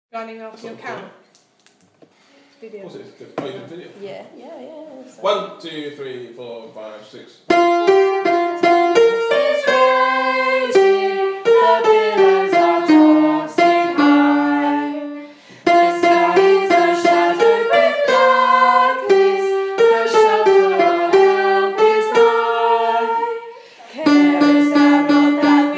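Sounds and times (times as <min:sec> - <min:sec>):
sopranos singing folk hymn in a chapel: 0:08.0 - 0:25.7.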